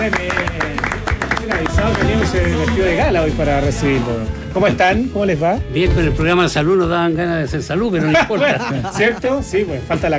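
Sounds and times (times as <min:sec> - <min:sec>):
speech: 0:00.0 - 0:00.6, 0:01.9 - 0:10.1
crowd applause: 0:00.0 - 0:03.1
laughter: 0:07.9 - 0:09.7.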